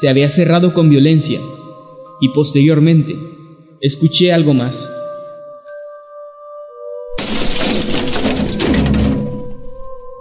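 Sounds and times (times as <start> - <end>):
speech: 0.0 - 1.6, 2.2 - 5.0
several objects falling to the floor: 7.2 - 9.8.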